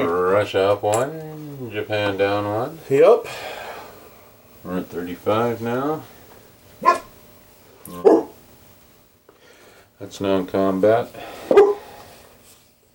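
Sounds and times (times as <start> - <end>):
speech: 0.4 - 3.5, 4.6 - 6.2, 7.9 - 8.1, 10.0 - 11.6
dog barking: 6.8 - 7.1, 8.0 - 8.4, 11.5 - 11.9.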